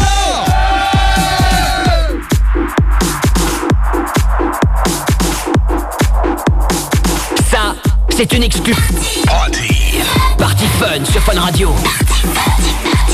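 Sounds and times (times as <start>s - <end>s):
studio crowd cheering and shouting: 0.0s - 2.3s
pounding fast dance beat with regular kick drums: 0.0s - 13.1s
speech: 8.2s - 9.3s, 10.6s - 12.6s.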